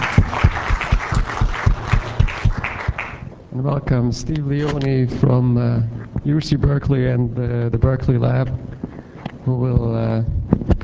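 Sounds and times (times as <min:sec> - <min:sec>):
audience applause after a lecture: 0:00.0 - 0:03.3
speech: 0:03.6 - 0:08.7, 0:09.5 - 0:10.4.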